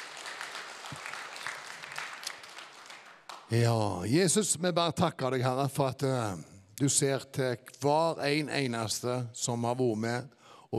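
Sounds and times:
crowd applauding: 0.0 - 3.5
speech: 3.5 - 10.7.

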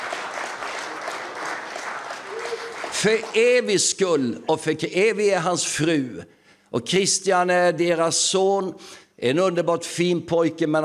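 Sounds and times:
crowd clapping: 0.0 - 4.2
speech: 3.0 - 10.8.

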